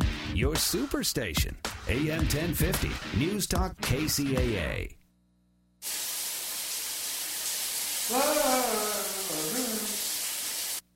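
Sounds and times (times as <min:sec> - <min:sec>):
speech: 0:00.4 - 0:05.0, 0:08.1 - 0:08.3
running water from a shower: 0:05.8 - 0:10.9.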